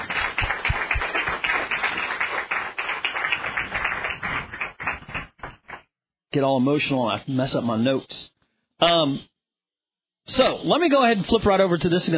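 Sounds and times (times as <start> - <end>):
audience applause: 0.0 - 5.8
speech: 6.3 - 9.3, 10.3 - 12.1.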